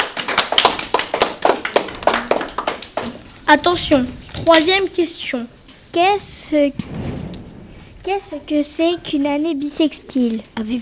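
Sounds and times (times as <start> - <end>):
small group clapping: 0.0 - 3.6
speech: 3.5 - 7.0, 8.0 - 10.8.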